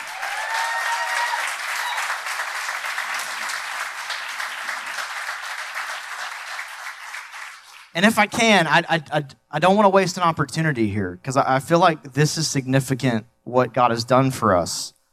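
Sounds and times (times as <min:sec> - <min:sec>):
audience clapping and cheering: 0:00.0 - 0:08.3
speech: 0:08.0 - 0:15.0.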